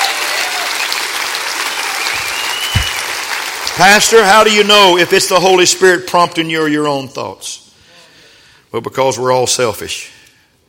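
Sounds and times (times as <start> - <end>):
audience clapping hands: 0.0 - 4.2
speech: 3.8 - 7.6, 8.7 - 10.2.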